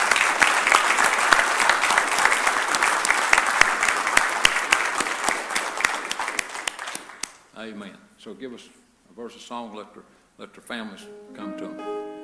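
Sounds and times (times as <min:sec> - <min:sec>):
audience applause: 0:00.0 - 0:07.4
speech: 0:07.7 - 0:11.8.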